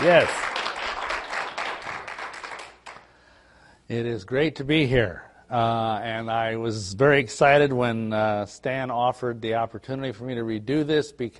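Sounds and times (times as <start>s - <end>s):
speech: 0.0s - 0.5s, 3.9s - 11.3s
audience applauding a speaker at a lecture: 0.0s - 3.0s.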